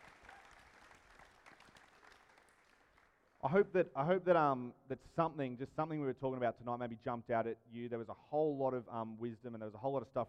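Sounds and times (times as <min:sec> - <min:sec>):
audience applause: 0:00.0 - 0:03.2
speech: 0:03.4 - 0:10.2.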